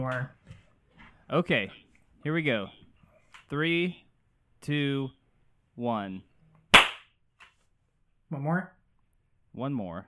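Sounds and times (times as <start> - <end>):
speech: 0.0 - 0.5, 1.3 - 2.8, 3.5 - 4.0, 4.6 - 5.2, 5.8 - 6.3, 8.3 - 8.8, 9.6 - 10.0
hand clap: 6.8 - 7.1.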